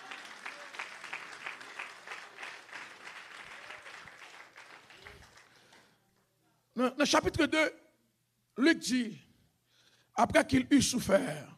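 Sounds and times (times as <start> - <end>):
audience applause: 0.0 - 5.9
speech: 6.8 - 7.8, 8.6 - 9.2, 10.2 - 11.5.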